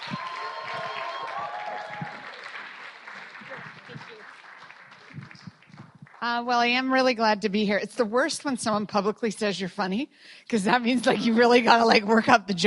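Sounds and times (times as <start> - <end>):
audience applause welcoming a speaker at a school Spiritual Emphasis Days gathering: 0.0 - 6.2
speech: 6.2 - 12.6.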